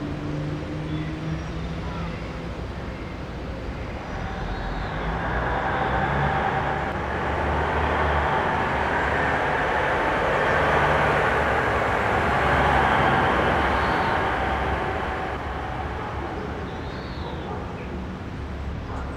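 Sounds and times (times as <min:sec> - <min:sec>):
street ambience: 0:00.1 - 0:19.0.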